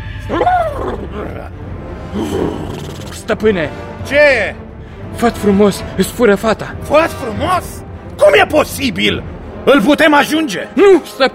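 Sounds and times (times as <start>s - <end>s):
horse neighing: 0.3s - 1.5s, 2.1s - 3.2s
speech: 0.3s - 11.3s.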